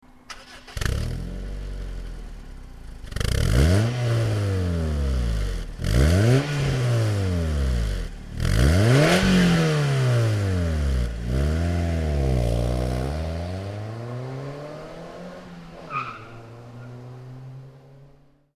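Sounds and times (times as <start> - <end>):
Magnaflow exhaust system: 0.8 - 15.0.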